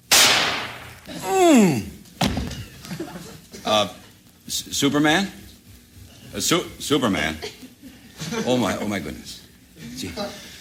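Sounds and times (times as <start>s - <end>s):
.22 gun shot sound effect: 0.1s - 1.0s
speech: 1.3s - 1.9s, 3.6s - 5.4s, 6.3s - 7.7s, 8.3s - 9.4s, 10.0s - 10.5s
laughter: 2.5s - 4.2s, 7.2s - 9.0s.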